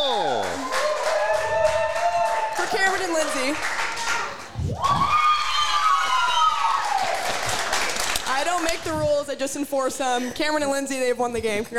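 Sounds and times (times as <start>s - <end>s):
cheering: 0.0s - 8.1s
applause: 0.0s - 8.9s
speech: 3.0s - 3.8s, 8.7s - 11.7s.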